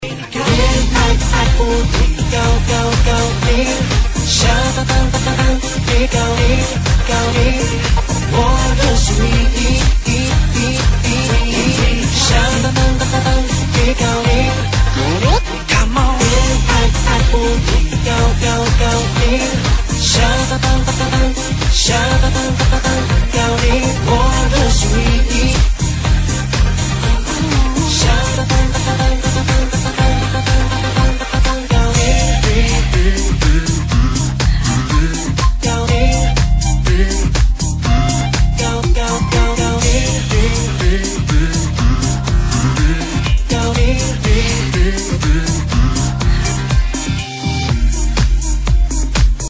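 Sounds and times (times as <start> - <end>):
funky house remix: 0.0 - 49.4.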